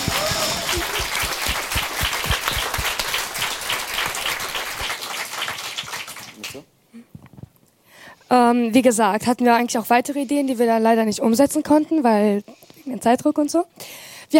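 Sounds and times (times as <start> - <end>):
audience applause: 0.0 - 6.6
speech: 8.3 - 14.3.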